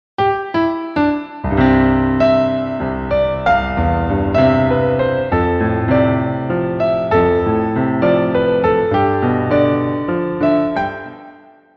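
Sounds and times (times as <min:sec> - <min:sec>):
piano concerto: 0:00.2 - 0:11.7.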